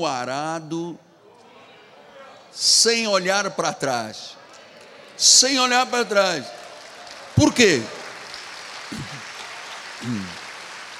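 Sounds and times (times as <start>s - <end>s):
speech: 0.0s - 1.1s, 2.6s - 4.4s, 5.2s - 6.6s, 7.4s - 8.0s, 10.0s - 10.4s
audience applauding: 4.7s - 10.9s
voices calling out: 8.9s - 9.4s.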